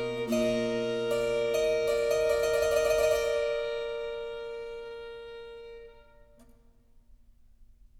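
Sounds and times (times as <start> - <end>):
harpsichord: 0.0 - 5.6
violin: 0.0 - 6.5.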